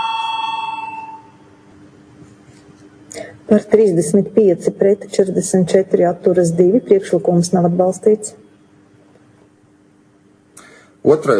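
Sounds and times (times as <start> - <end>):
parliament voting electric bell ringing: 0.0 - 1.6
speech: 3.5 - 8.4, 11.0 - 11.3.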